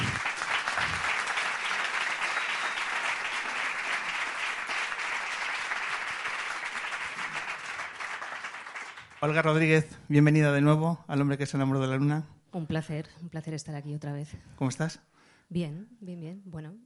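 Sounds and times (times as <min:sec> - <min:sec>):
audience applause: 0:00.0 - 0:09.8
speech: 0:09.2 - 0:16.8.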